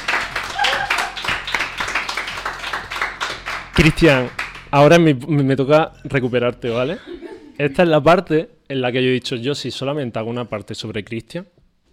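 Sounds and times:
audience clapping: 0:00.0 - 0:04.8
speech: 0:03.8 - 0:11.6.

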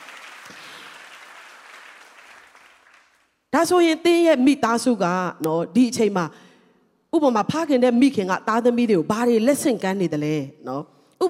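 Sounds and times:
church congregation clapping to praise God: 0:00.0 - 0:03.5
speech: 0:03.5 - 0:06.5, 0:07.1 - 0:11.2.

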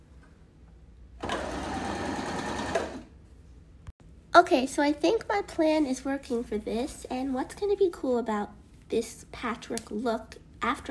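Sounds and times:
sewing machine stitching a straight strip of patchwork: 0:01.2 - 0:03.1
speech: 0:04.4 - 0:10.9.

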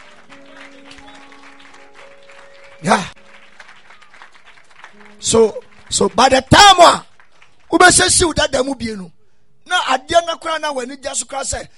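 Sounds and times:
audience clapping hands: 0:00.0 - 0:08.3
speech: 0:02.8 - 0:03.2, 0:05.2 - 0:07.1, 0:07.7 - 0:11.7.

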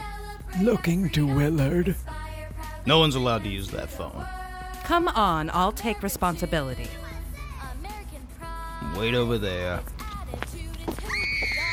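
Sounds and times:
speech: 0:00.6 - 0:02.2, 0:02.8 - 0:07.0, 0:09.0 - 0:10.4
scream: 0:11.1 - 0:11.7.

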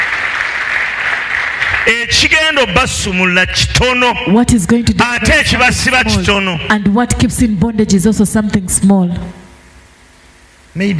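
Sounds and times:
audience clapping: 0:00.0 - 0:02.8
speech: 0:01.8 - 0:09.4, 0:10.8 - 0:10.9.

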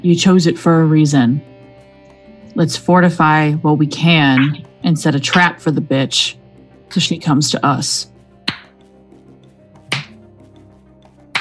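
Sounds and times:
speech: 0:00.0 - 0:01.5, 0:02.6 - 0:08.1
slow clapping from a monitor: 0:09.9 - 0:10.4, 0:11.1 - 0:11.3.

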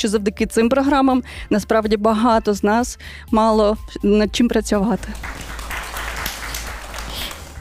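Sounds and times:
speech: 0:00.0 - 0:05.4
audience applause: 0:05.1 - 0:07.5.

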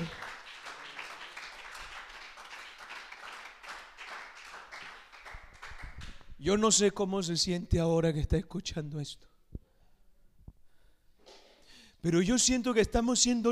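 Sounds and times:
audience applause: 0:00.0 - 0:06.1
speech: 0:06.4 - 0:09.3, 0:12.0 - 0:13.5.

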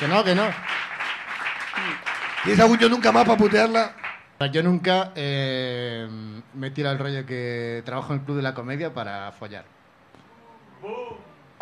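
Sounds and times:
speech: 0:00.0 - 0:00.7, 0:01.8 - 0:09.8
audience applause: 0:00.0 - 0:04.3.

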